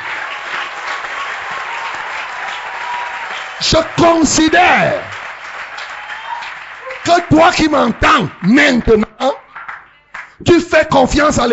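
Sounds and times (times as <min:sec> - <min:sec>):
audience cheering: 0:00.0 - 0:09.0
audience applauding: 0:00.0 - 0:10.4
speech: 0:03.6 - 0:05.2, 0:07.1 - 0:09.4, 0:10.8 - 0:11.5.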